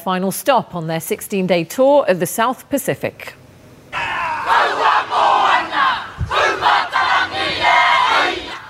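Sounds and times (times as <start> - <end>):
speech: 0.0 - 3.4
New Zealand Defence Force members performing a haka: 4.0 - 7.3.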